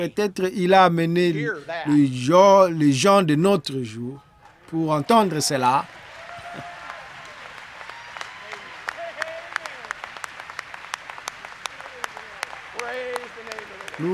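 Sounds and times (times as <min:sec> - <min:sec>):
speech: 0:00.0 - 0:06.0, 0:14.0 - 0:14.1
laughter: 0:00.0 - 0:14.1
audience applause: 0:04.3 - 0:14.1.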